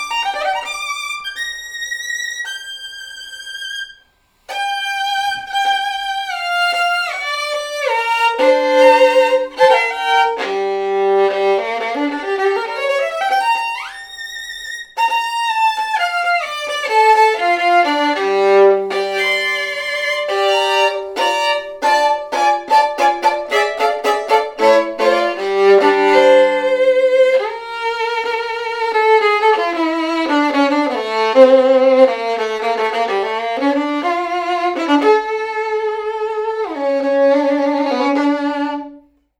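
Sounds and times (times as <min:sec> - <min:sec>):
Czech Stradivarius violin: 0:00.0 - 0:39.2.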